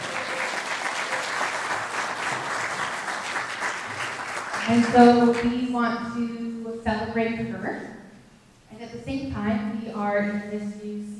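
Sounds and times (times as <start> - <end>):
audience applause: 0.0 - 5.4
speech: 4.7 - 8.0, 8.8 - 11.1.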